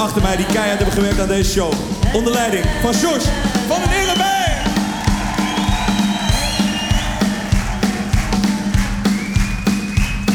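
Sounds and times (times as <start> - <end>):
speech: 0.0 - 4.5
steady rhythmic thumps: 0.0 - 10.3
large audience cheering and whooping: 2.1 - 10.3
piercing whistles: 3.9 - 8.2, 9.0 - 10.3.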